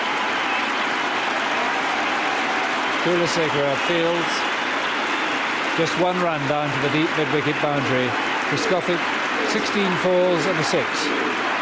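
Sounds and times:
cricket crowd cheering and applauding a century: 0.0s - 11.6s
speech: 3.0s - 4.5s, 5.8s - 11.5s.

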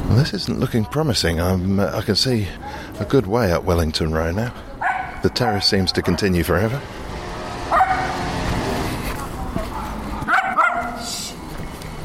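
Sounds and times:
speech: 0.1s - 7.0s
dog barking: 4.8s - 6.3s, 7.7s - 8.4s, 9.7s - 11.1s.

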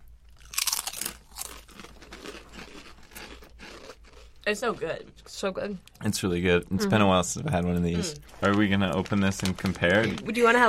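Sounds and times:
crunching on potato chips: 0.3s - 4.6s, 8.2s - 10.5s
speech: 4.5s - 10.6s.

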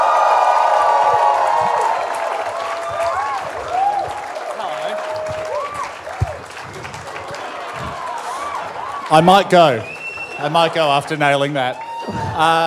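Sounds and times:
whoops and cheering voices: 0.0s - 9.1s, 11.6s - 12.6s
audience applauding to welcome a guest onto a stage: 0.0s - 12.6s
speech: 9.1s - 12.6s.

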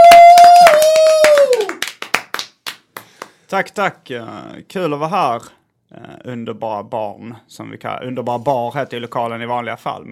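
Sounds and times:
audience applause: 0.0s - 3.3s
speech: 3.5s - 10.1s.

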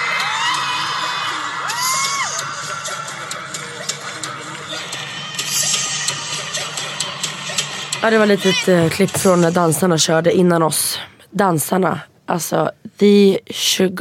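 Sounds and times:
huge arena crowd cheering and screaming wildly: 0.0s - 3.3s
speech: 8.0s - 14.0s.

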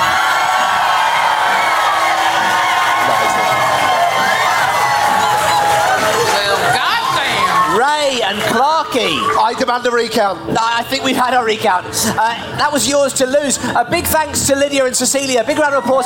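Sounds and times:
crowd applauding: 0.0s - 9.4s
speech: 8.9s - 16.0s.

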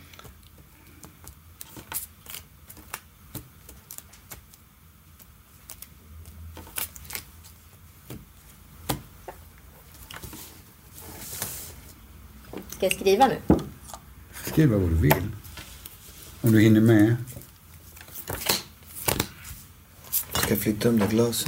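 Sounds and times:
deck of playing cards being shuffled: 0.1s - 12.6s, 14.3s - 21.4s
speech: 12.8s - 13.6s, 14.6s - 15.4s, 16.4s - 17.3s, 20.5s - 21.4s.

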